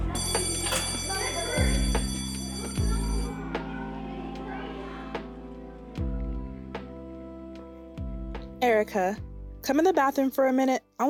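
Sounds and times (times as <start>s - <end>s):
school bell ringing: 0.1s - 3.6s
speech: 8.8s - 11.0s.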